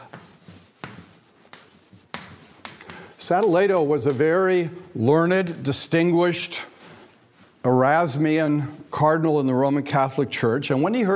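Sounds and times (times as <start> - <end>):
scratchy strokes writing a name on a board: 0.0 - 4.3, 6.0 - 7.7
speech: 3.2 - 6.7, 7.6 - 11.1.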